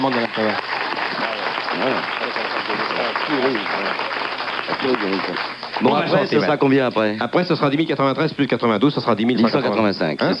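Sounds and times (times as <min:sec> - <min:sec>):
speech: 0:00.0 - 0:00.8, 0:01.8 - 0:10.3
audience applause: 0:00.0 - 0:07.0.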